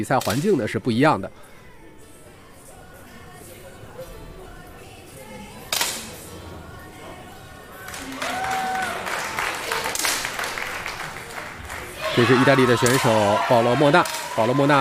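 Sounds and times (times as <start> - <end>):
speech: 0.0 - 1.5, 12.2 - 14.8
spectators cheering at shooting competition: 7.8 - 14.8.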